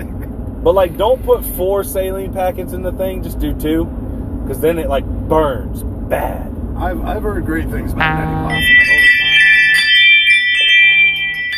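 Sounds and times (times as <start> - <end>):
speech: 0.6 - 9.0
doorbell chime: 8.0 - 11.5.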